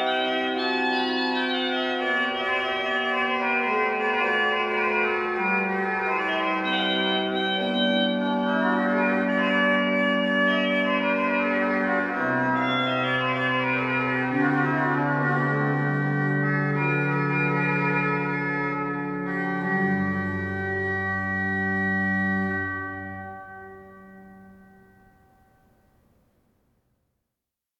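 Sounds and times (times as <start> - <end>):
organ solo on the cornet stop for a mass Sanctus: 0.0 - 25.2.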